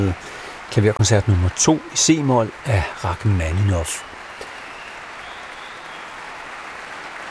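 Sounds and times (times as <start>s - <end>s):
speech: 0.0s - 4.1s
large audience giving thunderous applause: 0.0s - 7.2s.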